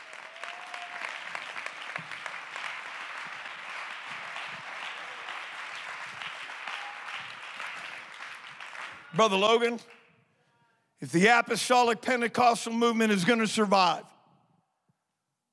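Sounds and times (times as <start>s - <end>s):
audience clapping hands in praise: 0.0s - 10.1s
speech: 9.2s - 10.0s, 11.0s - 14.1s.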